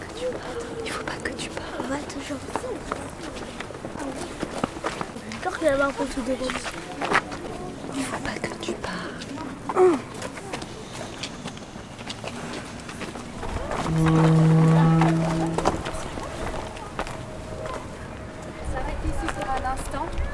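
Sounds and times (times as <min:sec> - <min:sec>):
footsteps: 0:00.0 - 0:20.3
speech: 0:01.9 - 0:03.0, 0:05.6 - 0:07.0, 0:09.8 - 0:10.1, 0:14.0 - 0:14.3
gate creaking: 0:13.7 - 0:16.2.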